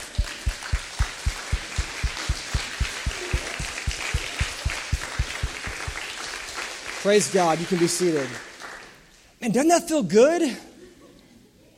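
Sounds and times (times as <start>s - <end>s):
standing ovation applause: 0.0s - 9.1s
speech: 7.0s - 8.5s, 9.4s - 10.7s.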